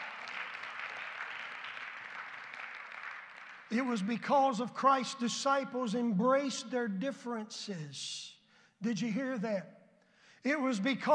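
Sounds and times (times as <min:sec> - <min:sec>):
audience clapping: 0:00.0 - 0:04.2
speech: 0:03.7 - 0:09.8, 0:10.4 - 0:11.1.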